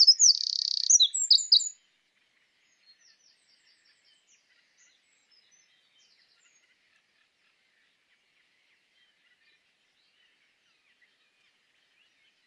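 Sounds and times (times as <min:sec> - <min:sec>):
Eurasian wren Troglodytes troglodytes indigenus singing: 0:00.0 - 0:01.7.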